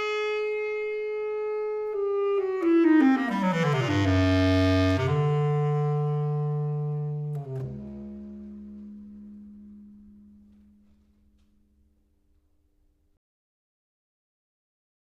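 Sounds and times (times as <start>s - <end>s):
bass clarinet: 0.0s - 11.9s.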